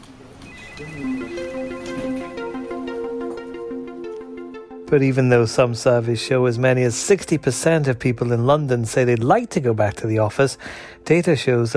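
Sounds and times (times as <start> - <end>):
melodic phone ringtone in an office: 0.4 - 4.8
speech: 0.8 - 1.6, 4.9 - 11.7.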